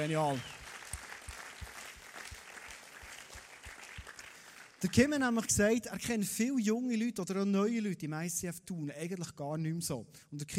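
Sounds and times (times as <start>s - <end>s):
speech: 0.0s - 0.6s, 4.8s - 10.5s
audience welcome applause: 0.0s - 5.4s.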